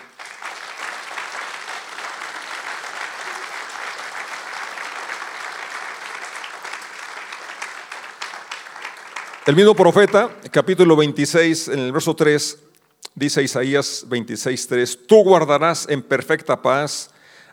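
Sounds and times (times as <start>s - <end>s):
audience applause: 0.0s - 10.3s
speech: 9.5s - 17.2s.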